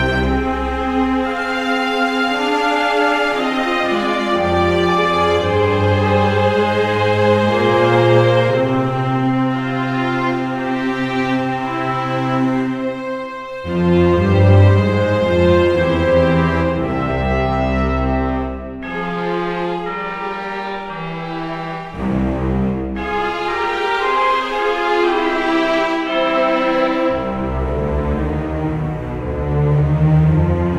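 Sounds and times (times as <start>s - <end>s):
requiem music loop: 0.0s - 30.7s.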